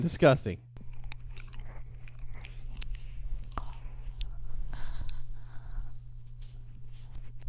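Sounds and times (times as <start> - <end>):
steady low hum: 0.0 - 7.4
ASMR crunchy chip eating into microphone: 0.8 - 4.3.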